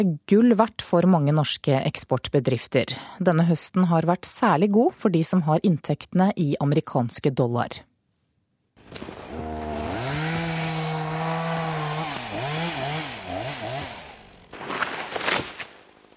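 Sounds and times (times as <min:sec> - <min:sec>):
speech: 0:00.0 - 0:07.9
chainsaw felling trees: 0:08.8 - 0:16.1.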